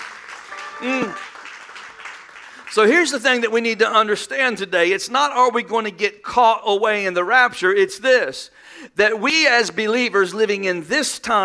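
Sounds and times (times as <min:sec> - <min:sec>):
congregation clapping during a church service: 0:00.0 - 0:03.5
person shouting: 0:00.8 - 0:01.2
speech: 0:00.8 - 0:01.3, 0:02.8 - 0:11.4.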